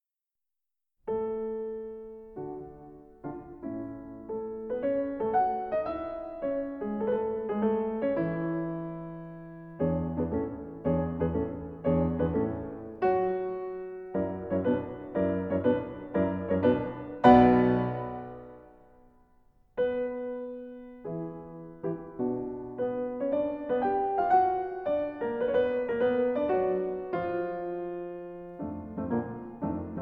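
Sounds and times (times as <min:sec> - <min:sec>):
classical concert allegro in A major: 0:01.1 - 0:19.0, 0:19.7 - 0:30.0.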